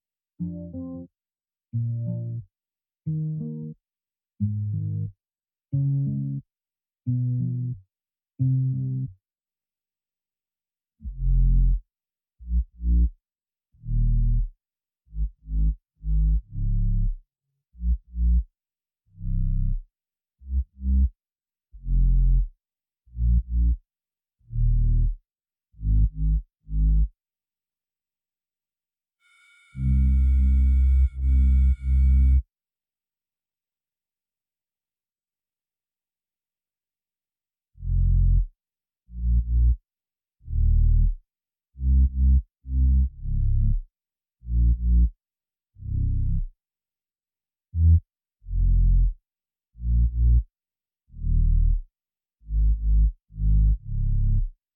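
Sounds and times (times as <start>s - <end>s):
bass: 0.4s - 1.1s, 1.7s - 2.5s, 3.1s - 3.8s, 4.4s - 6.5s, 7.1s - 7.8s, 8.4s - 9.2s, 11.0s - 14.5s, 15.1s - 18.5s, 19.1s - 19.8s, 20.4s - 22.5s, 23.1s - 23.8s, 24.4s - 25.2s, 25.8s - 27.1s, 29.8s - 32.4s, 37.8s - 38.5s, 39.1s - 39.8s, 40.4s - 41.2s, 41.8s - 43.8s, 44.4s - 45.2s, 45.8s - 46.5s, 47.8s - 49.2s, 49.8s - 50.5s, 51.1s - 54.5s.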